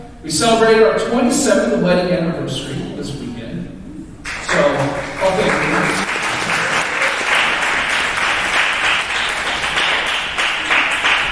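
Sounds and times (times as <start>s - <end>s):
speech: 0.2s - 3.3s
crowd applause: 4.2s - 11.3s.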